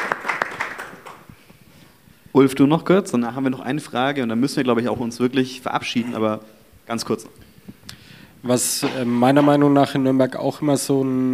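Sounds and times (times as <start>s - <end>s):
small audience applause: 0.0s - 1.3s
speech: 2.4s - 7.4s, 8.4s - 11.3s.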